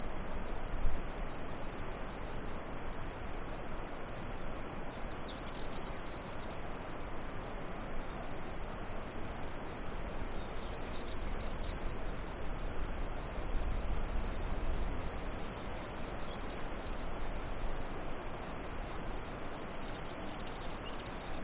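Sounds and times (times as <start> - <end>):
cicadas: 0.0 - 21.4.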